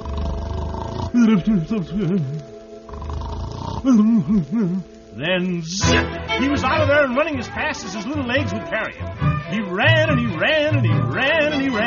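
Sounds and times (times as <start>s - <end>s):
voice imitating a giant's snoring: 0.0s - 4.3s
speech: 1.2s - 2.5s, 3.8s - 11.8s.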